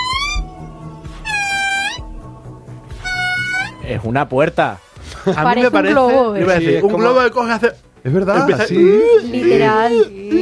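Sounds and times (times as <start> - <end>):
monkey call: 0.0 - 0.6, 1.2 - 2.1, 3.0 - 3.9
speech: 3.9 - 10.4.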